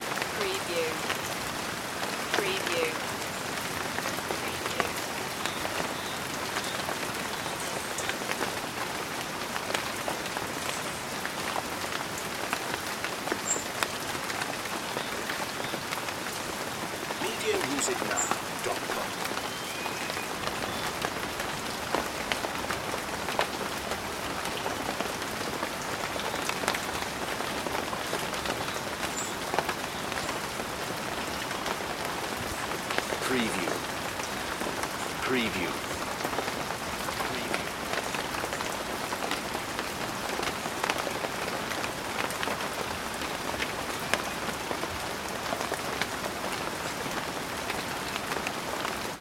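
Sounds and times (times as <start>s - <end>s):
rain falling below trees: 0.0s - 49.1s.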